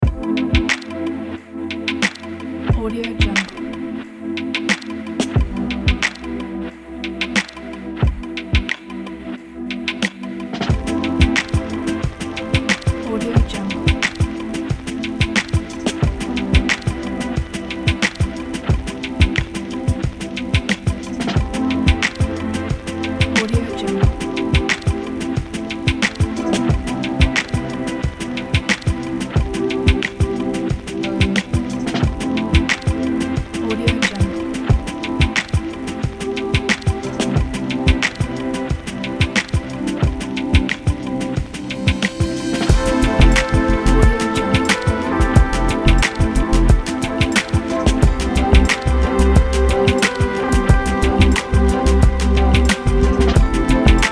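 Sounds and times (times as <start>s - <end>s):
ambient chillout hip hop music: 0.0s - 54.0s.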